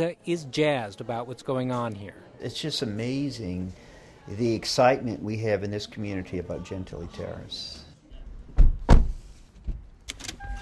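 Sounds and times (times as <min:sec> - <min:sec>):
speech: 0:00.0 - 0:07.8
Lexus car doors thudding: 0:08.6 - 0:09.2.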